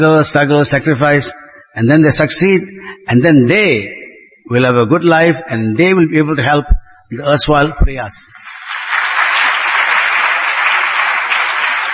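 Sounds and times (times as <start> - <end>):
speech: 0.0 - 8.4
audience clapping: 8.4 - 11.9.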